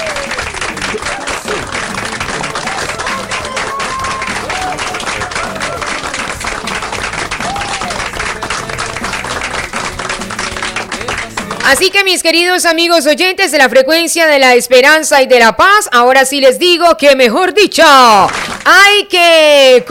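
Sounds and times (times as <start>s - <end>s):
audience applause: 0.0s - 11.9s, 18.2s - 18.7s
speech: 11.7s - 19.8s.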